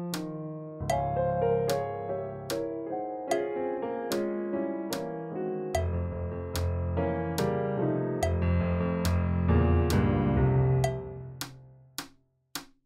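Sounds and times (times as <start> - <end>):
fast piano: 0.0 - 11.4.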